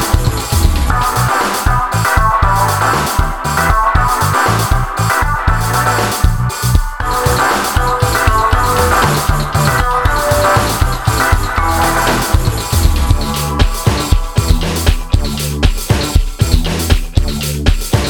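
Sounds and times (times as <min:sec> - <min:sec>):
loud music with thumping beat and bass in a beer bar: 0:00.0 - 0:18.0.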